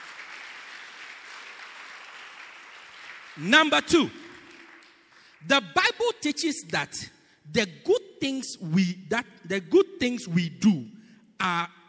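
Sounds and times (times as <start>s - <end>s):
crowd clapping: 0.0s - 5.6s
speech: 3.4s - 4.2s, 5.4s - 11.8s.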